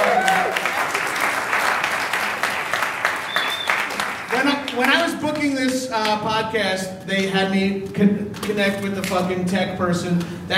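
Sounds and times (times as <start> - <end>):
round of applause: 0.0 - 5.1
speech: 5.4 - 10.5.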